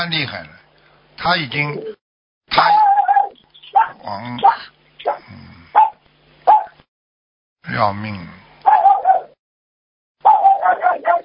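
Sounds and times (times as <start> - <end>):
speech: 0.0 - 0.6, 1.2 - 2.9, 4.0 - 5.8, 7.6 - 8.4
dog barking: 2.6 - 5.2, 5.8 - 6.8, 8.6 - 9.4, 10.2 - 11.2.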